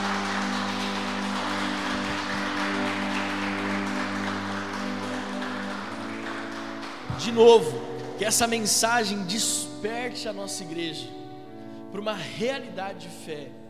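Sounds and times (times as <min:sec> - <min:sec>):
audience applause: 0:00.0 - 0:08.6
speech: 0:07.2 - 0:11.2, 0:11.9 - 0:13.6.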